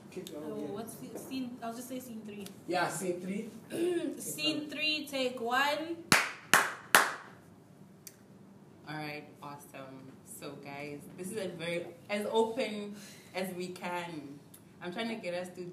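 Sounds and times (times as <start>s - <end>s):
speech: 0.2s - 6.3s, 8.9s - 15.7s
sharp hand claps on a film set as a slate: 6.1s - 7.4s.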